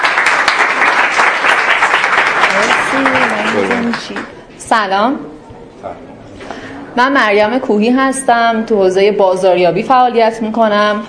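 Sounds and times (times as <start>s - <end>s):
audience applause for a presenter at a business talk event: 0.0s - 4.4s
speech: 2.6s - 6.0s, 7.0s - 11.0s.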